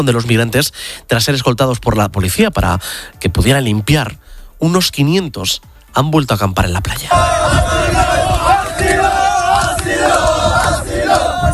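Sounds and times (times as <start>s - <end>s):
speech: 0.0s - 8.2s
crowd of migrants chanting for asylum: 7.1s - 11.5s.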